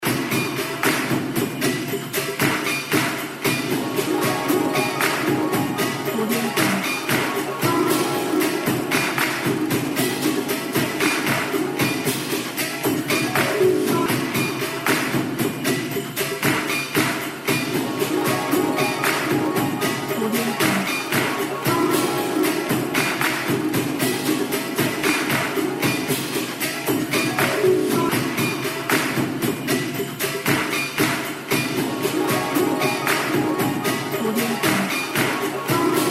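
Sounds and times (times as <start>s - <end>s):
Chinese New Year festive music: 0.0s - 36.0s.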